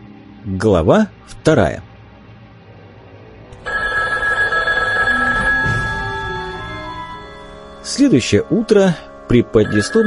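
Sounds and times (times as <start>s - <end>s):
speech: 0.4s - 1.9s, 7.9s - 10.0s
alarm clock beeping loudly: 3.6s - 8.4s, 9.5s - 10.0s.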